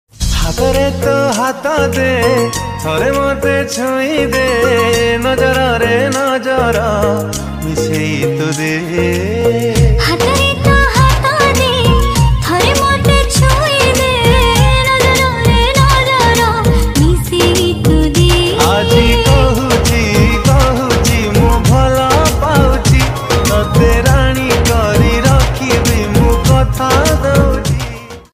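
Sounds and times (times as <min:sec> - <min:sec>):
Odia romantic song: 0:00.2 - 0:28.3.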